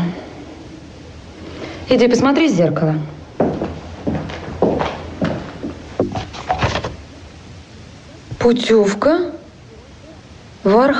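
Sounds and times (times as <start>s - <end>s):
speech: 1.9s - 3.1s, 8.4s - 9.4s, 10.6s - 10.9s
heavy footsteps of a colonel: 3.3s - 7.1s.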